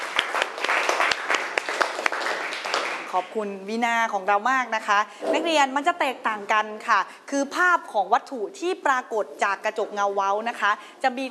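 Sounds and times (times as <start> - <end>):
classroom applause: 0.0 - 3.4
speech: 3.1 - 11.3.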